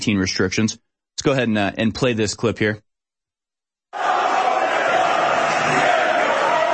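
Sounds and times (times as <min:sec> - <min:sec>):
speech: 0:00.0 - 0:02.8
massive protest crowd shouting and chanting in a tunnel: 0:04.0 - 0:06.7.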